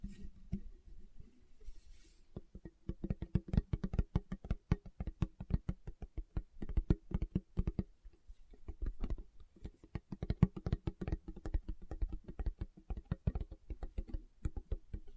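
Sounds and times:
fingertips tapping on a surface: 2.3 - 15.1.

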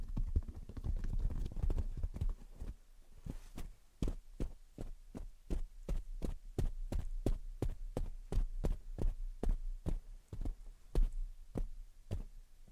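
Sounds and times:
low steady hum: 0.2 - 12.7
rustling scratches: 1.8 - 3.8.

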